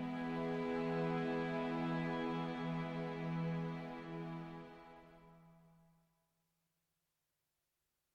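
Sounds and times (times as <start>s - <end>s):
cello: 0.0s - 5.7s.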